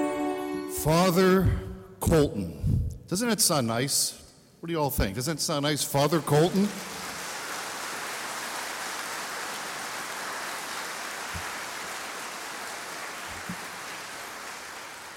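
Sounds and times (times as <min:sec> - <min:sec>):
speech: 0:00.8 - 0:07.1
crowd applause: 0:05.9 - 0:15.1.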